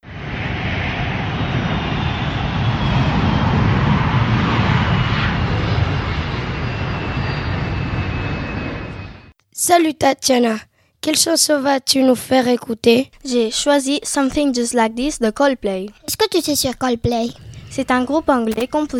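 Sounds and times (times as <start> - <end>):
airplane taking off sound effect: 0.0 - 9.4, 17.1 - 18.9
speech: 9.7 - 18.9.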